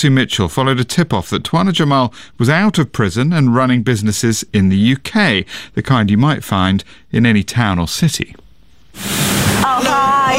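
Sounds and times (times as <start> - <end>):
speech: 0.0 - 8.4, 9.0 - 10.3
car wash spraying water in the north of England: 8.9 - 9.8.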